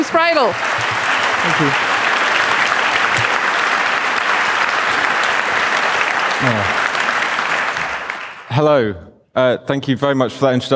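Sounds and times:
audience applause: 0.0s - 8.6s
speech: 0.1s - 2.0s, 6.4s - 6.8s, 8.6s - 10.7s.

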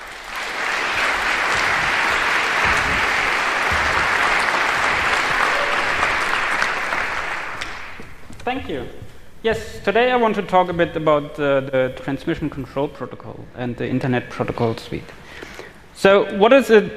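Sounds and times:
audience applause: 0.0s - 8.2s
speech: 8.5s - 15.4s, 16.0s - 16.9s.

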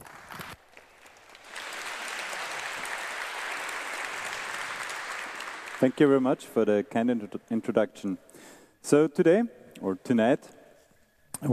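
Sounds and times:
audience applause: 0.0s - 6.8s
speech: 5.8s - 10.6s, 11.4s - 11.5s.

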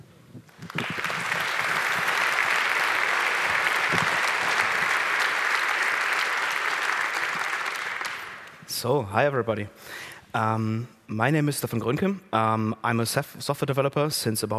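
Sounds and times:
audience applause: 0.5s - 8.7s
speech: 8.8s - 14.5s.

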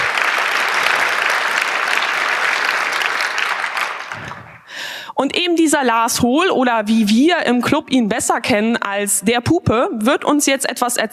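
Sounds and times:
audience applause: 0.0s - 4.7s
speech: 5.2s - 11.1s.

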